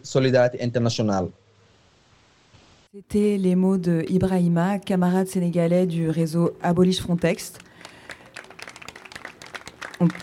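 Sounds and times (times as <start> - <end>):
speech: 0.0 - 1.4, 2.9 - 7.7, 10.0 - 10.2
applause after a speech about migrants' rights: 7.6 - 10.2.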